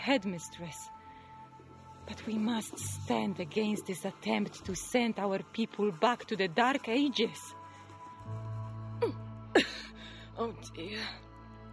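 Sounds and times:
speech: 0.0s - 1.0s, 2.1s - 7.6s, 10.4s - 11.3s
coughing spell: 9.0s - 10.0s.

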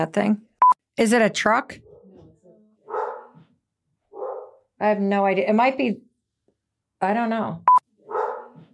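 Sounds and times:
speech: 0.0s - 1.8s, 4.8s - 6.1s, 7.0s - 7.7s
dogs barking: 2.8s - 3.5s, 4.1s - 4.7s, 8.0s - 8.7s.

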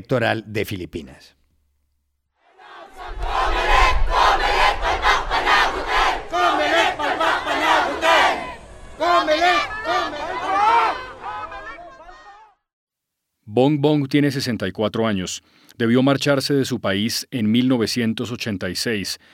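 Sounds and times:
speech: 0.0s - 1.4s, 9.0s - 10.2s, 13.5s - 19.3s
protest crowd shouting slogans in Manila: 2.4s - 12.6s.

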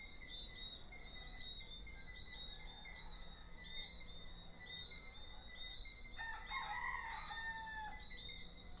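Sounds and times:
small frogs chirping: 0.0s - 8.7s
rooster crowing: 6.2s - 8.0s.

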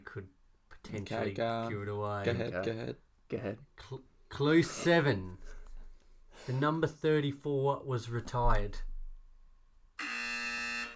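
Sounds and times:
speech: 0.2s - 5.6s, 6.4s - 8.9s
quiz buzzer: 10.0s - 10.9s.

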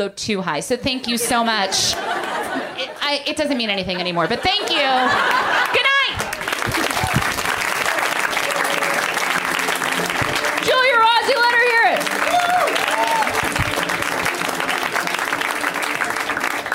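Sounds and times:
speech: 0.0s - 5.9s
laughter: 0.9s - 3.2s, 3.9s - 9.3s
comedy audience subdued applause: 5.0s - 16.7s.

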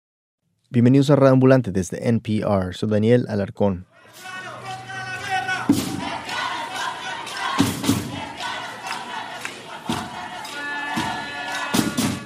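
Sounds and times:
speech: 0.7s - 4.3s
crowd of over 100 people chanting: 3.8s - 12.2s
loud accented shouts: 3.9s - 12.2s.

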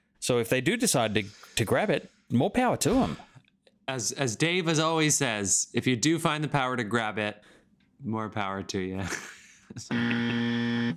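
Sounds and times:
speech: 0.3s - 3.3s, 3.9s - 10.9s
buzzer sound effect: 9.9s - 10.9s.

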